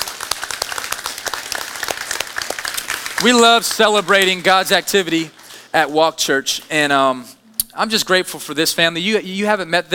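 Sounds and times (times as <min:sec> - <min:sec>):
audience clapping: 0:00.0 - 0:06.2
speech: 0:03.2 - 0:09.9.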